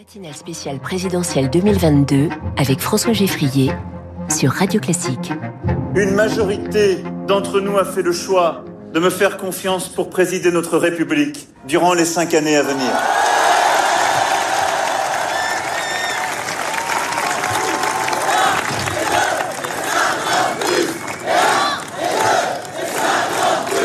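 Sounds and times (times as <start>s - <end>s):
speech: 0.0s - 13.3s
crowd applauding: 12.6s - 23.8s.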